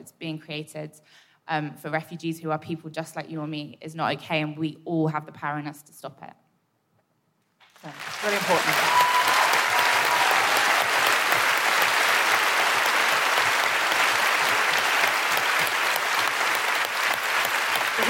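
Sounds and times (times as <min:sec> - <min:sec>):
speech: 0:00.0 - 0:06.4, 0:07.8 - 0:09.1
audience applause: 0:07.6 - 0:18.0.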